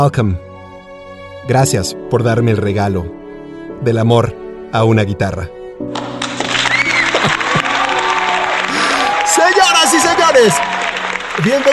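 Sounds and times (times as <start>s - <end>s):
speech: 0.0s - 0.4s, 1.4s - 3.2s, 3.8s - 6.1s, 10.4s - 10.8s, 11.4s - 11.7s
audience applause and crowd noise: 5.9s - 11.7s.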